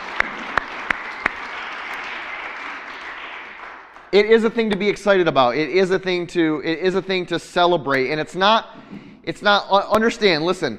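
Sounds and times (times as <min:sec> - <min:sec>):
audience applause: 0:00.0 - 0:04.2
speech: 0:04.1 - 0:10.7.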